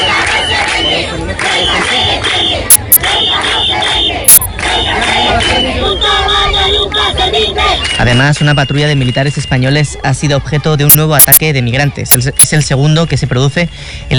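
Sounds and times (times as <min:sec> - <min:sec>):
protest crowd chanting and shouting: 0:00.0 - 0:14.1
speech: 0:08.0 - 0:14.1.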